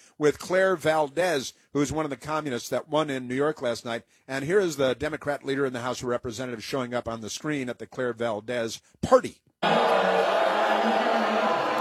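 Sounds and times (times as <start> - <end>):
speech: 0.2 - 11.0
crowd at an election-night party booing: 9.6 - 11.8.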